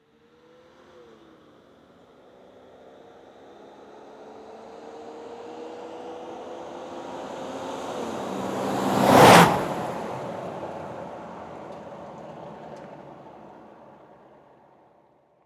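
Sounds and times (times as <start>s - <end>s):
jeep passing quickly: 4.2s - 14.0s.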